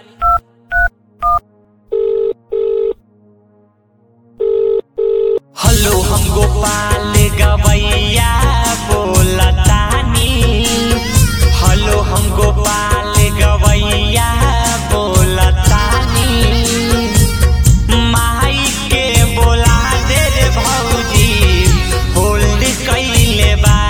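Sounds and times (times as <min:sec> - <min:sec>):
two-tone keypad beeps of a phone being dialled: 0:00.2 - 0:01.4
double-burst phone ringing tones: 0:00.2 - 0:03.0, 0:04.4 - 0:05.4
loud music: 0:05.6 - 0:23.8.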